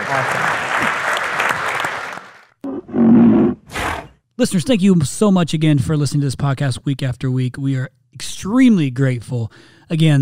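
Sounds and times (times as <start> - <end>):
audience clapping: 0.0 - 2.6
speech: 0.1 - 0.4, 4.4 - 10.1.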